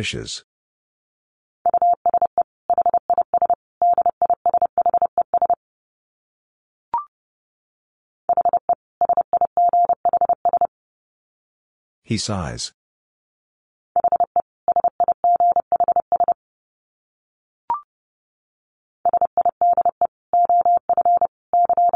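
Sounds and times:
speech: 0:00.0 - 0:00.5, 0:12.1 - 0:12.8
rapid Morse code tones at about 30 words per minute: 0:01.7 - 0:05.6, 0:08.3 - 0:10.7, 0:14.0 - 0:16.4, 0:19.1 - 0:21.9.

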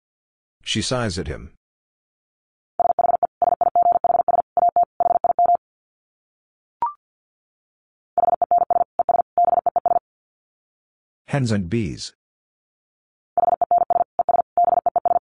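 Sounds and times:
speech: 0:00.7 - 0:01.6, 0:11.3 - 0:12.2
Morse code tones at 50 wpm: 0:02.8 - 0:05.6, 0:08.2 - 0:10.0, 0:13.4 - 0:15.2.

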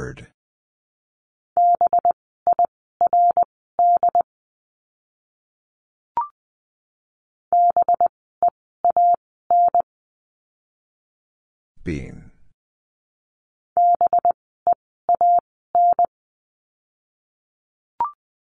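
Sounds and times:
Morse code beeps spelling a word: 0:01.6 - 0:04.2, 0:07.6 - 0:08.1, 0:08.8 - 0:09.8, 0:13.8 - 0:14.4, 0:15.1 - 0:16.1
speech: 0:11.9 - 0:12.3.

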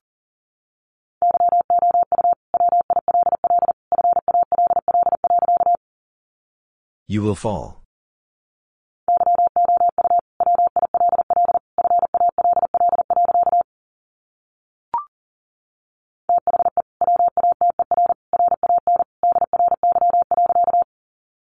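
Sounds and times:
Morse code tones at 40 words per minute: 0:01.3 - 0:05.8, 0:09.1 - 0:13.7, 0:16.4 - 0:20.9
speech: 0:07.1 - 0:07.8.

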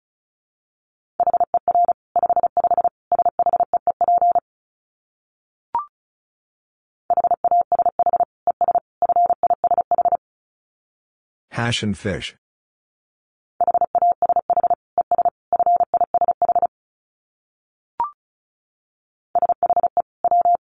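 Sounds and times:
Morse code tones at 35 wpm: 0:01.2 - 0:04.4, 0:07.1 - 0:10.2, 0:13.6 - 0:16.7, 0:19.4 - 0:20.6
speech: 0:11.6 - 0:12.4.

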